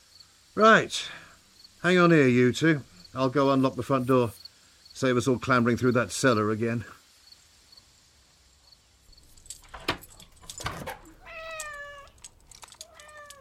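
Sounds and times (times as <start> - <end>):
soft steady hiss: 0.0 - 13.3
speech: 0.6 - 1.2, 1.8 - 4.4, 5.0 - 7.0
cat giving drawn-out high-pitched meows: 11.0 - 13.3.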